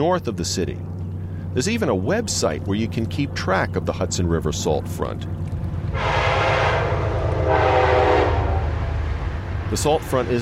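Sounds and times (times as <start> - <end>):
speech: 0.0 - 6.2, 9.7 - 10.4
train rumbling past: 0.7 - 10.4
train horn blasts: 5.9 - 9.0.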